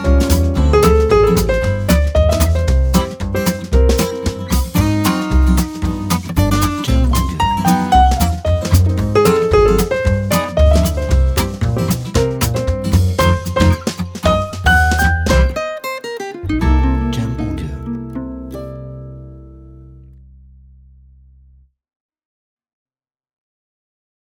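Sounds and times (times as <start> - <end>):
happy jazz music: 0.0 - 19.9.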